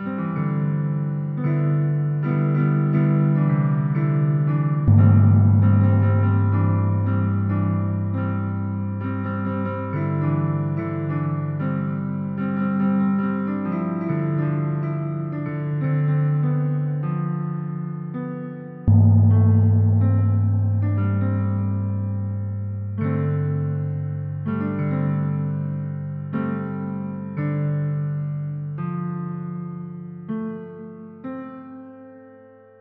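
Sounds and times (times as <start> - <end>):
piano: 0.0 - 32.7.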